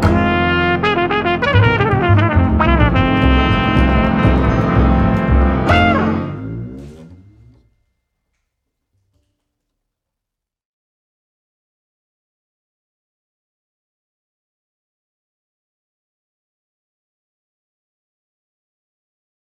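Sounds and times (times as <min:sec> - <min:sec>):
play-along backing music: 0:00.0 - 0:07.6.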